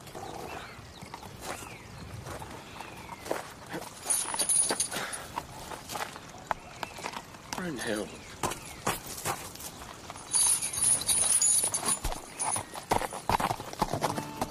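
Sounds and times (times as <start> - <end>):
horse hooves clip-clopping: 1.0 - 14.4
speech: 7.7 - 8.2.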